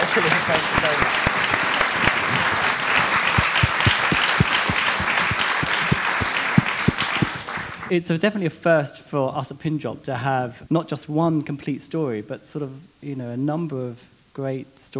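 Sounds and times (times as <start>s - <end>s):
laughter: 0.0s - 7.5s
audience applause: 0.0s - 7.9s
speech: 0.2s - 1.4s, 2.0s - 2.7s, 7.9s - 14.9s.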